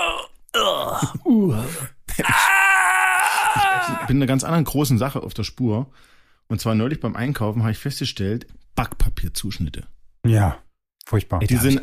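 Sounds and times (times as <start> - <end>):
speech: 0.8 - 2.4, 4.1 - 11.8
voice imitating stifled loud cries of old computer games: 2.2 - 4.1.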